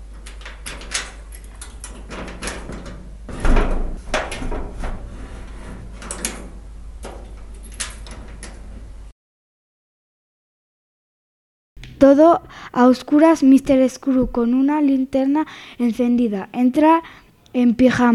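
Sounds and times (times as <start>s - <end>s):
keys turning in lock while closing shop: 0.1s - 3.0s, 7.0s - 8.6s
speech: 12.0s - 18.1s.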